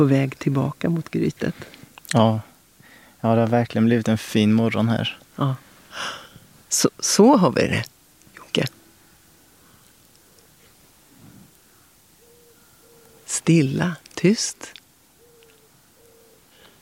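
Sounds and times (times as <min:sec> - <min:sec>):
speech: 0:00.0 - 0:02.5, 0:03.2 - 0:07.9, 0:08.5 - 0:08.8, 0:13.4 - 0:14.8
wood pigeons cooing: 0:08.7 - 0:13.9, 0:15.1 - 0:16.8.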